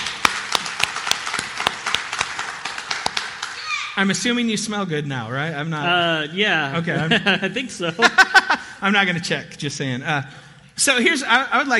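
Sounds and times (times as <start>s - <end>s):
audience applause welcoming a guest: 0.0s - 3.9s
speech: 4.0s - 11.7s
laughter: 6.8s - 8.8s.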